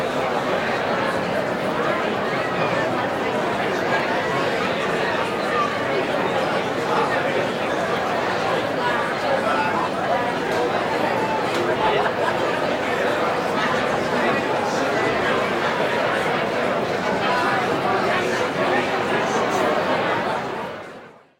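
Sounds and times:
crowd walla in a busy airport lounge boarding area: 0:00.0 - 0:21.3.

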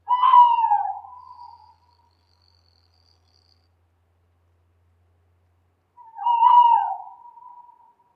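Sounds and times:
owl: 0:00.0 - 0:03.6, 0:06.0 - 0:08.0.

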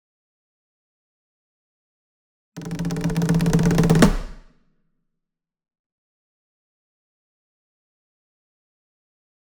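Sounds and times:
single shime daiko drum roll, near: 0:02.6 - 0:04.5.

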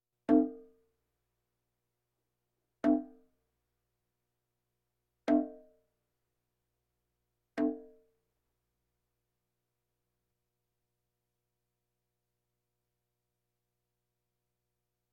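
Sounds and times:
bongos: 0:00.3 - 0:00.6.

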